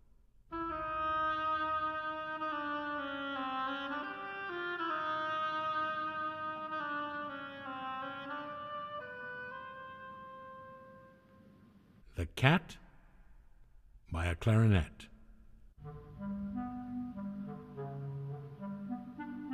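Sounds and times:
reedy oboe playing a slow melody: 0.5s - 11.5s, 15.8s - 19.5s
speech: 12.2s - 12.8s, 14.3s - 15.1s.

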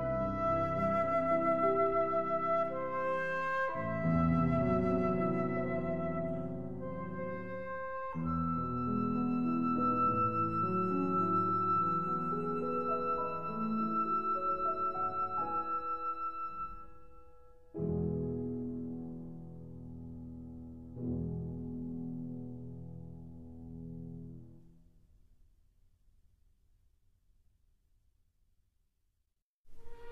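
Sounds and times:
flute and piano lullaby: 0.0s - 22.9s, 29.7s - 30.1s.

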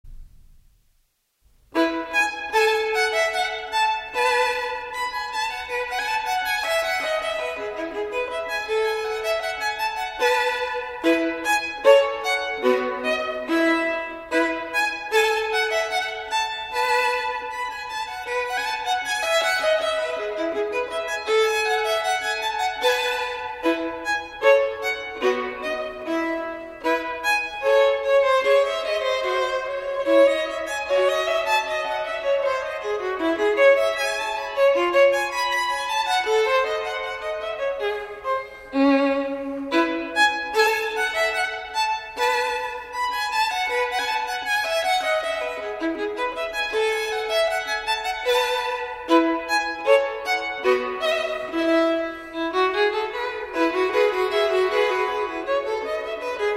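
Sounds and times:
solo violin piece: 1.6s - 56.5s.

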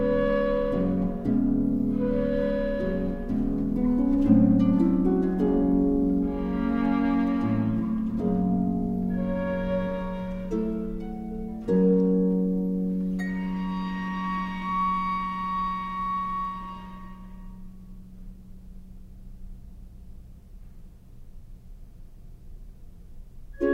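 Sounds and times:
sonatina for flute viola and harp: 0.0s - 18.0s, 23.6s - 23.7s.

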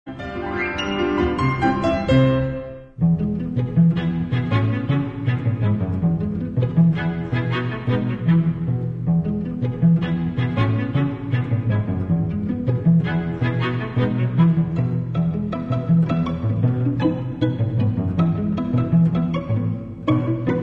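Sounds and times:
string quartet playing calypso: 1.1s - 20.6s.

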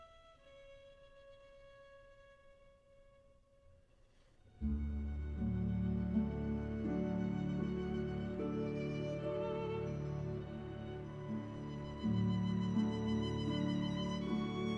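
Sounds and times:
solo violin: 0.0s - 14.7s
orchestra playing: 4.5s - 14.7s.

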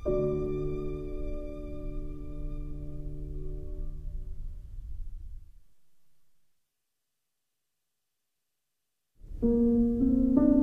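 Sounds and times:
violin: 0.0s - 4.0s
piano: 0.0s - 6.4s, 9.2s - 10.6s.

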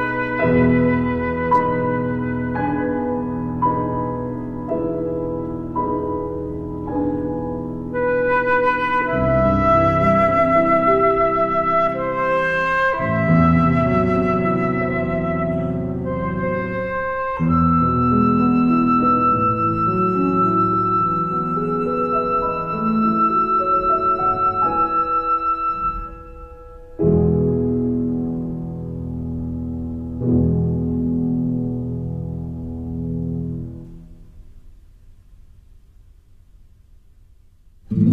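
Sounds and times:
flute playing a lullaby: 0.0s - 5.0s, 7.9s - 27.2s
piano playing a lullaby: 0.0s - 36.6s, 37.8s - 38.1s.

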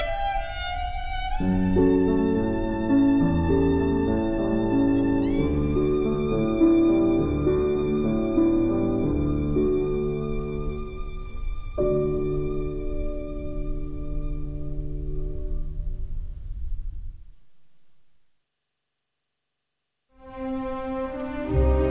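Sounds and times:
violin: 0.0s - 15.8s, 20.2s - 21.8s
piano: 0.0s - 18.2s, 20.2s - 21.8s.

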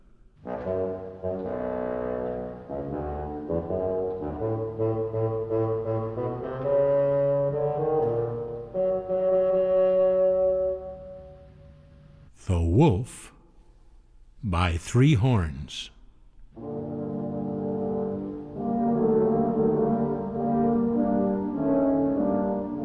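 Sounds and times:
bassoon melody: 0.4s - 11.6s, 16.6s - 22.8s
speech: 12.8s - 13.3s, 14.5s - 15.9s.

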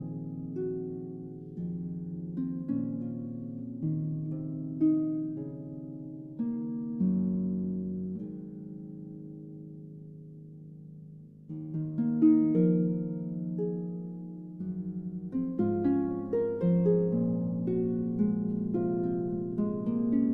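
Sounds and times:
harp concerto lullaby: 0.0s - 20.3s.

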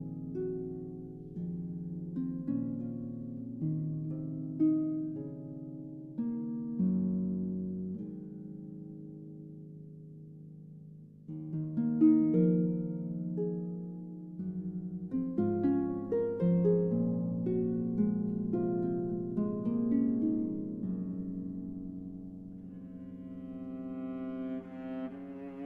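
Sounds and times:
harp concerto lullaby: 0.0s - 25.6s.

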